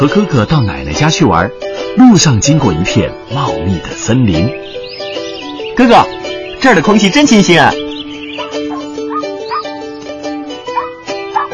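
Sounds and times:
speech: 0:00.0 - 0:04.6, 0:05.8 - 0:07.8
small dog yipping and whimpering: 0:08.4 - 0:09.8, 0:10.7 - 0:11.5.

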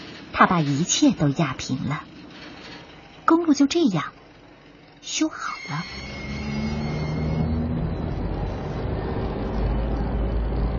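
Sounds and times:
speech: 0:00.4 - 0:02.1, 0:03.3 - 0:04.2, 0:05.0 - 0:06.2
cars and trucks driving on road: 0:05.6 - 0:10.7.

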